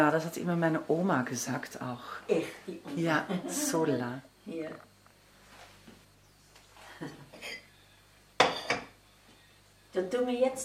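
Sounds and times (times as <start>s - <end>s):
speech: 0.0s - 4.9s, 7.0s - 7.2s, 10.0s - 10.6s
ceramic plates clinking as they are handled: 8.4s - 9.0s.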